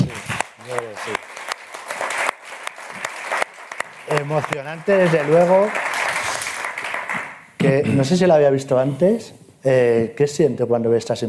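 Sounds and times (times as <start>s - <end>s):
applause: 0.0s - 7.5s
speech: 0.7s - 1.2s, 4.1s - 5.9s, 7.7s - 11.2s.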